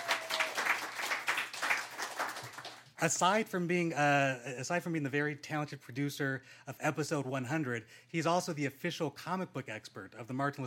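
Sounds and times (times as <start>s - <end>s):
audience applause: 0.0s - 2.9s
speech: 3.0s - 10.6s.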